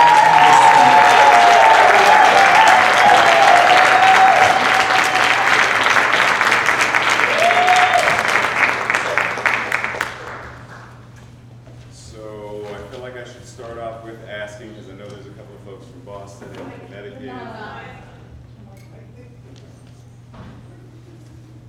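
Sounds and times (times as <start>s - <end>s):
audience applause welcoming a reverend onto the stage: 0.0s - 11.0s.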